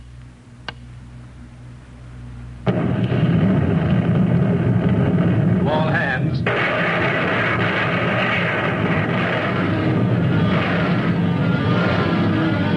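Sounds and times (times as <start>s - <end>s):
naval gunfire in battle: 2.7s - 12.4s.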